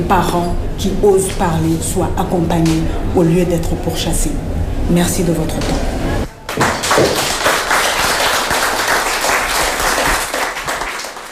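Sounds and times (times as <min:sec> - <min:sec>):
speech: 0:00.0 - 0:06.0
crowd applauding: 0:06.5 - 0:11.3.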